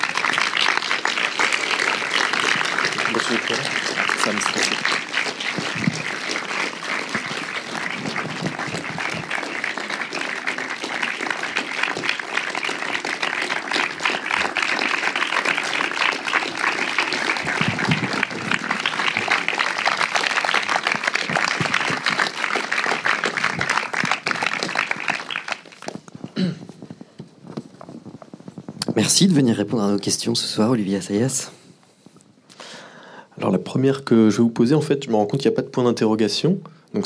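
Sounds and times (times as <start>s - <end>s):
audience applause welcoming filmmaker Olivier Assayas: 0.0s - 26.4s
speech: 3.3s - 5.0s, 29.2s - 31.6s, 33.7s - 37.0s.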